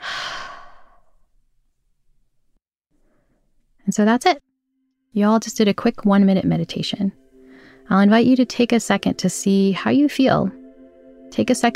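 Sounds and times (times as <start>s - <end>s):
deep breath released as a big airy sigh: 0.0s - 1.2s
speech: 3.9s - 4.5s, 5.1s - 7.2s, 7.9s - 10.6s, 11.3s - 11.7s.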